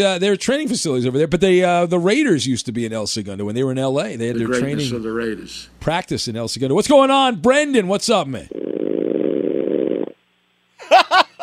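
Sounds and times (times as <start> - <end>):
speech: 0.0 - 8.6
raspy fart-like buzz: 8.5 - 10.2
laughter: 10.8 - 11.4.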